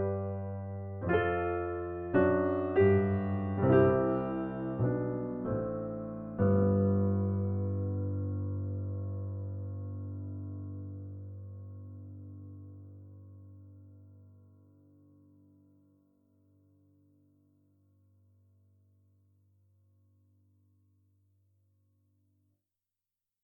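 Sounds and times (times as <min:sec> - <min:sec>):
pseudo-acoustic piano spasmodic playing: 0:00.0 - 0:11.9.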